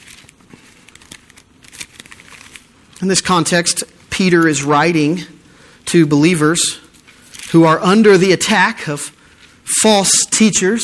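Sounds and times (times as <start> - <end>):
congregation turning Bible pages during a church service: 0.0 - 3.0, 6.9 - 7.6
speech: 3.0 - 6.8, 7.5 - 9.2, 9.8 - 10.8.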